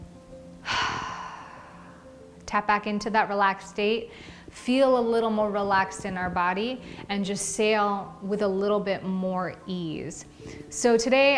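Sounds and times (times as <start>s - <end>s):
deep breath during a relaxation and breathing exercise: 0.6s - 2.1s, 4.1s - 4.5s
speech: 2.5s - 11.3s.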